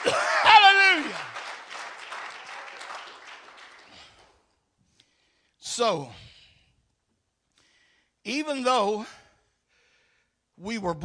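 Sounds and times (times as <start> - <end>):
audience applauding: 0.0 - 4.4
speech: 5.8 - 6.2, 8.2 - 9.2, 10.6 - 11.0.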